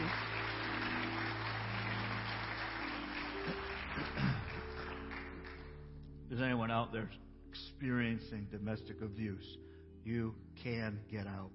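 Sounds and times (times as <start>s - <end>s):
audience applause: 0.0s - 5.9s
speech: 6.4s - 11.5s.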